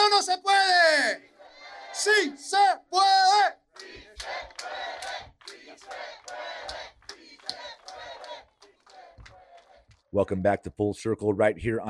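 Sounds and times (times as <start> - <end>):
crowd chanting at the kickoff of a march to Sacramento: 1.0 - 9.9
speech: 2.0 - 6.9, 10.1 - 11.8.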